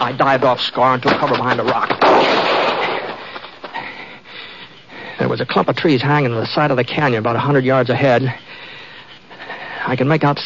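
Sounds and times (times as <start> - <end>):
speech: 0.0 - 2.6, 5.4 - 8.4, 9.9 - 10.4
gunfire echoing in a canyon: 1.1 - 3.4.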